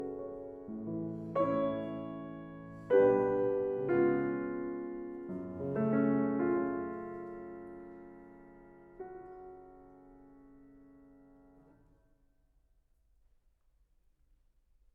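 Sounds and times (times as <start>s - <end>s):
agitated piano prelude in F sharp minor: 0.0s - 11.6s.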